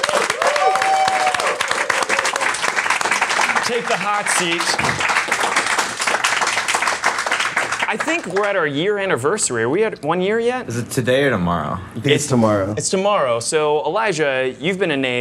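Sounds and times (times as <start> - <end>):
round of applause: 0.0 - 8.6
speech: 3.7 - 5.1, 7.9 - 15.2.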